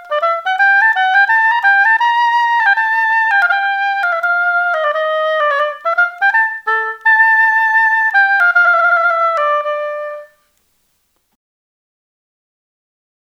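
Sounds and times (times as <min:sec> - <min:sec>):
oboe: 0:00.0 - 0:10.5.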